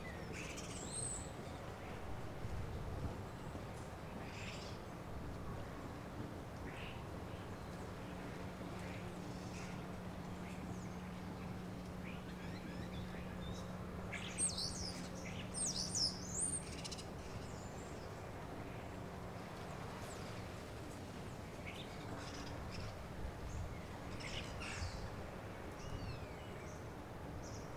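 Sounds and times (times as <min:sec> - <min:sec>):
early morning soundscape at Mont Saint Michel: 0:00.0 - 0:27.7.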